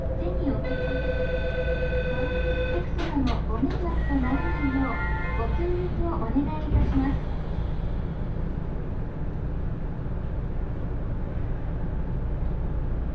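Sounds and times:
spoken train announcement: 0.0 - 1.2, 2.7 - 7.2
train rumbling on the Aonami and Higashiyama rail lines: 0.0 - 13.1.

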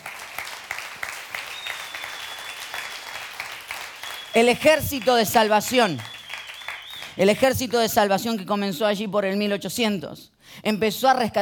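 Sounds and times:
audience applause: 0.0 - 7.2
speech: 4.4 - 6.1, 7.2 - 11.4.

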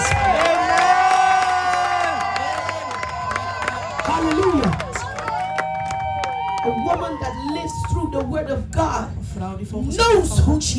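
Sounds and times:
audience clapping and cheering loudly: 0.0 - 8.5
speech: 8.2 - 10.7.

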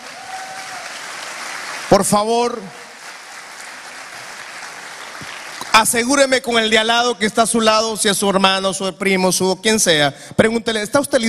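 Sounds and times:
audience applauding: 0.0 - 6.3
speech: 1.9 - 2.8, 5.8 - 11.2.

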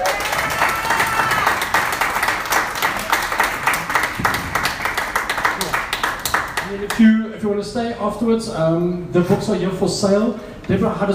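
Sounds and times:
audience applause: 0.0 - 7.0
speech: 7.0 - 11.1.

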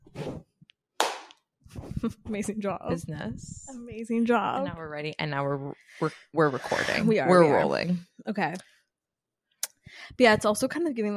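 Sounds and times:
single hand clap for recording sync: 1.0 - 1.4
speech: 2.0 - 8.7, 9.9 - 11.1.

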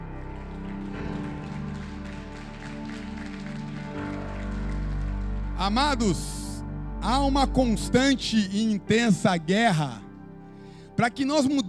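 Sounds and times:
audience applauding: 0.0 - 5.6
sustained low musical tones: 0.0 - 11.6
speech: 5.6 - 6.4, 7.0 - 10.0, 11.0 - 11.6.

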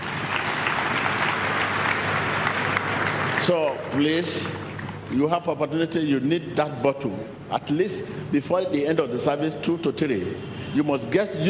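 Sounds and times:
audience clapping: 0.0 - 5.1
speech: 3.4 - 11.4.

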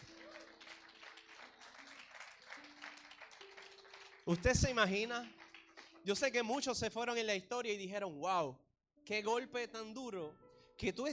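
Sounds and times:
audience applauding: 0.0 - 6.7
speech: 4.3 - 5.4, 6.0 - 11.1.

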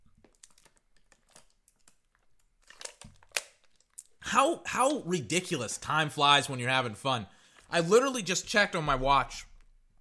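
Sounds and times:
plastic water bottle crinkling: 0.0 - 4.2
speech: 4.3 - 9.5.

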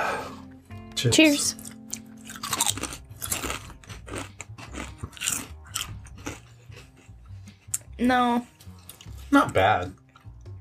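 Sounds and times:
speech: 1.0 - 1.7, 8.0 - 8.5, 9.3 - 10.0
salt and vinegar potato chips being crunched and chewed: 1.5 - 7.0.

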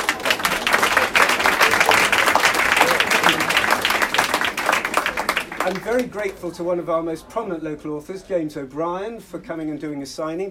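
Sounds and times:
audience applause: 0.0 - 6.4
speech: 5.7 - 10.4.

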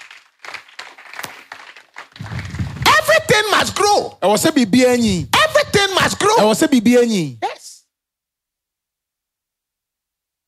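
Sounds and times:
audience clapping: 0.0 - 3.9
speech: 3.4 - 7.5.

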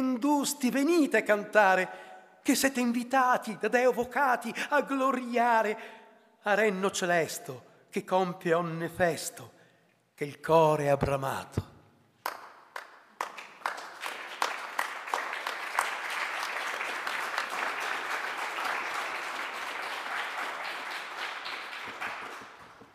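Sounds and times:
speech: 0.2 - 9.6, 10.2 - 12.4
audience applause: 12.3 - 22.9.

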